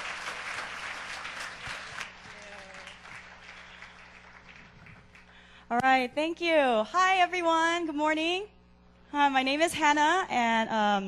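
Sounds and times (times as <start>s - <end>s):
audience applause: 0.0s - 5.5s
faint tonal hum: 0.0s - 11.0s
speech: 5.7s - 11.0s.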